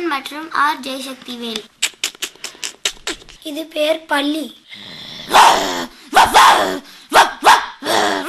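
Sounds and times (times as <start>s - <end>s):
speech: 0.1s - 1.8s, 3.4s - 5.7s, 6.6s - 6.9s
person imitating an aggressive fighting dog barking: 5.3s - 8.2s.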